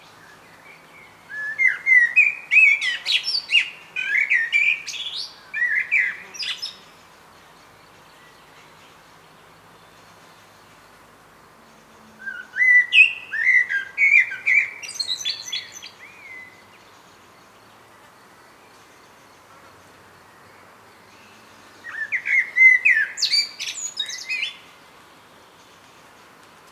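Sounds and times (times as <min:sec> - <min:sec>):
Common blackbird song: 0:00.2 - 0:06.9, 0:12.2 - 0:16.7, 0:21.2 - 0:24.7.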